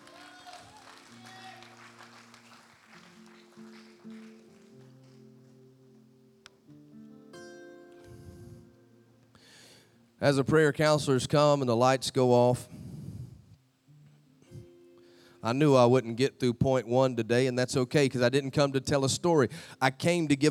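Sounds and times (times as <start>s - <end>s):
crowd shouting: 0.0s - 1.9s
audience clapping: 0.0s - 5.6s
keyboard chords: 3.2s - 10.3s
speech: 10.2s - 12.8s, 15.5s - 20.4s.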